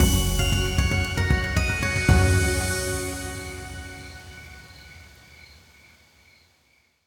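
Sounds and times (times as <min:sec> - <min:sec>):
free spin outro music: 0:00.0 - 0:04.6.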